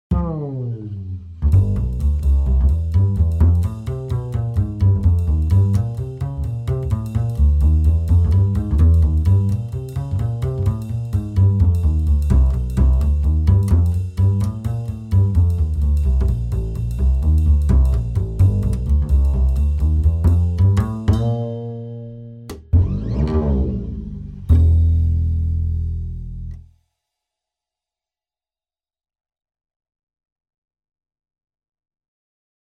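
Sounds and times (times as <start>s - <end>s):
acoustic big hand swing music: 1.1s - 23.8s, 24.4s - 25.7s.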